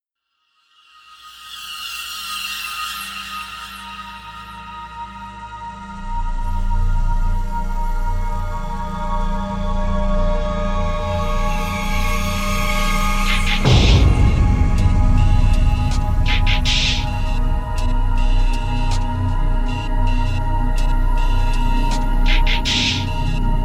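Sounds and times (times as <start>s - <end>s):
instrumental low percussion: 6.9s - 23.6s.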